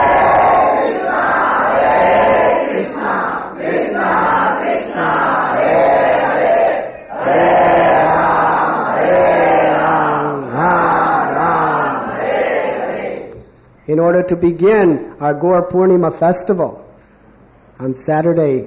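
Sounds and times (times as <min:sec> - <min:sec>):
crowd of devotees chanting the holy name in the streets: 0:00.0 - 0:13.3
speech: 0:14.2 - 0:16.8, 0:17.8 - 0:18.6.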